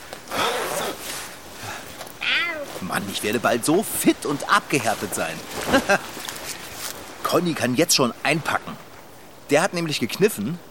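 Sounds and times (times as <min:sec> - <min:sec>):
clothes rustling as someone undresses before ice bathing: 0:00.0 - 0:09.4
zipper as someone undresses before ice bathing: 0:00.3 - 0:01.3
speech: 0:02.8 - 0:06.2, 0:07.3 - 0:08.9, 0:09.5 - 0:10.7.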